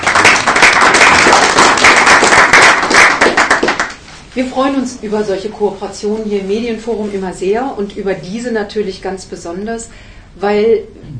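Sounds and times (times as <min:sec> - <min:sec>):
crowd applauding: 0:00.0 - 0:04.0
speech: 0:04.4 - 0:11.1.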